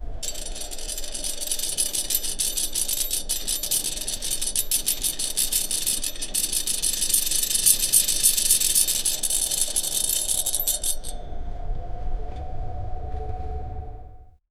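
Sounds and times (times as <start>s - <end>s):
spinning cable winch: 0.0s - 14.0s.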